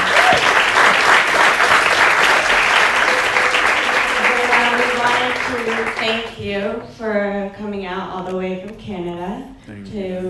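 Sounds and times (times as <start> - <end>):
audience applause at the end of a lecture on discipleship: 0.0 - 6.3
speech: 6.0 - 10.2.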